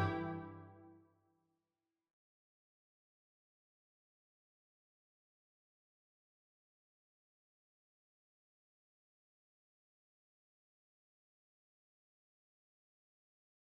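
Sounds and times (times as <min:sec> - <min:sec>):
strings: 0:00.0 - 0:00.8.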